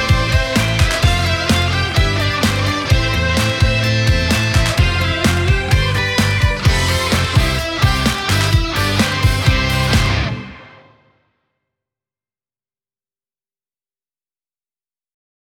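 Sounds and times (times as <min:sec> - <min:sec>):
musical accompaniment: 0:00.0 - 0:11.1.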